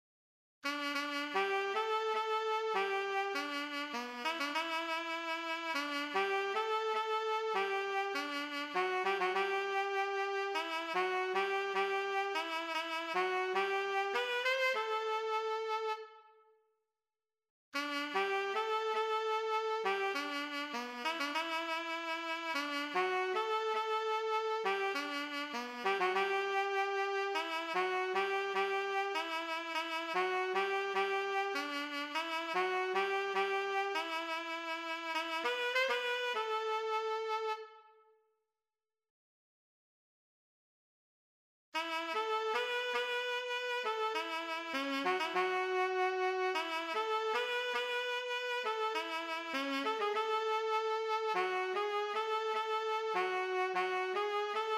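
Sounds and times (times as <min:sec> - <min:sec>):
saxophone: 0:00.6 - 0:16.5, 0:17.8 - 0:38.1, 0:41.8 - 0:54.7.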